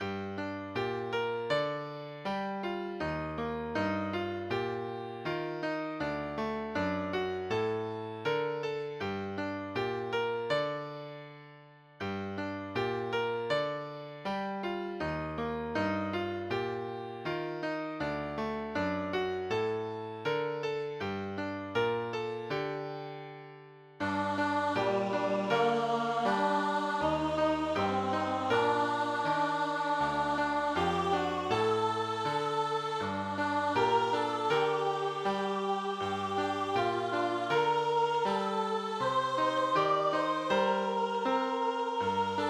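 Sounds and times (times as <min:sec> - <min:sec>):
piano: 0:00.0 - 0:42.4.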